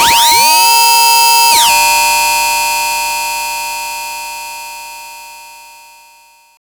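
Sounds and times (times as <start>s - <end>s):
noise effect: 0.0s - 4.7s.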